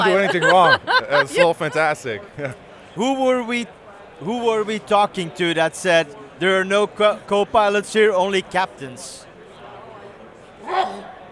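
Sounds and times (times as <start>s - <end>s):
laughter: 0.0s - 2.6s
speech: 0.1s - 9.3s, 10.7s - 11.1s
loud sneeze: 10.6s - 11.2s.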